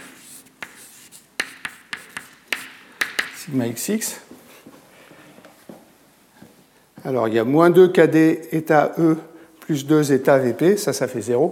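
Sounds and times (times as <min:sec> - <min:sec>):
writing on a board: 0:00.0 - 0:03.5
speech: 0:03.4 - 0:04.4, 0:07.0 - 0:11.5.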